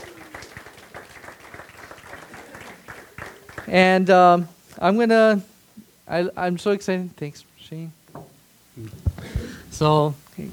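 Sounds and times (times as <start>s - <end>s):
audience applause welcoming a speaker to the stage: 0.0s - 3.8s
speech: 3.7s - 5.5s, 6.1s - 8.0s, 8.8s - 9.0s, 9.7s - 10.5s.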